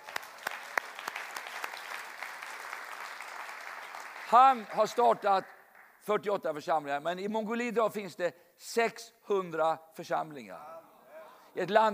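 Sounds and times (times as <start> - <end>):
audience applause: 0.0 - 5.9
speech: 4.3 - 10.7, 11.6 - 11.9.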